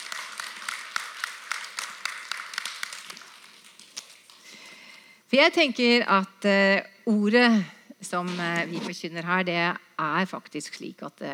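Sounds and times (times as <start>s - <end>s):
audience applause: 0.0s - 3.6s
speech: 5.3s - 11.3s.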